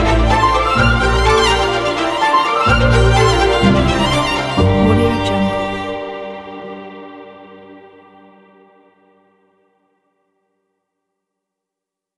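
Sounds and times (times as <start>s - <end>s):
bouncing curiosity orchestral strings: 0.0s - 6.5s.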